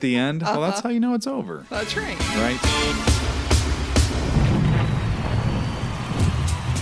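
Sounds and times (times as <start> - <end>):
speech: 0.0 - 3.4
thunder sound effect: 3.4 - 6.8.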